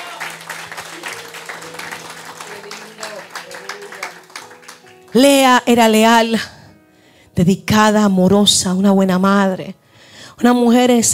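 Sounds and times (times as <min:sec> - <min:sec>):
audience applauding: 0:00.0 - 0:05.2
speech: 0:05.2 - 0:06.6, 0:07.4 - 0:09.8, 0:10.4 - 0:11.1.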